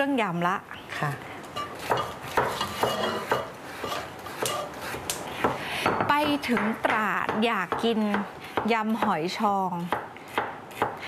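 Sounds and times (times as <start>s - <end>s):
speech: 0.0s - 1.3s, 6.0s - 10.0s
kitchenware clinking: 1.5s - 4.8s
knife slicing salad ingredients for Thai spicy salad: 1.8s - 9.2s, 9.8s - 11.0s.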